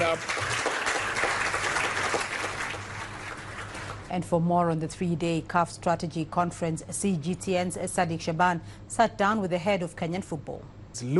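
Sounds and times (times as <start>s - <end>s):
audience clapping: 0.0s - 4.1s
speech: 4.1s - 11.1s.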